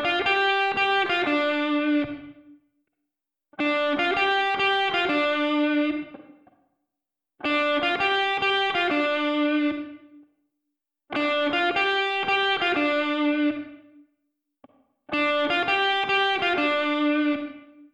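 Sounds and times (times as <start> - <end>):
isolated guitar melody live recording: 0.0 - 2.6, 3.6 - 6.4, 7.4 - 10.2, 11.2 - 13.9, 15.1 - 17.8.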